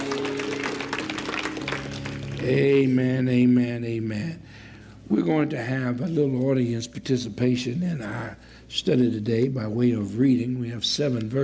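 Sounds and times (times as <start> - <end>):
congregation applauding at a church service: 0.0 - 3.4
speech: 2.4 - 4.5, 5.1 - 11.4.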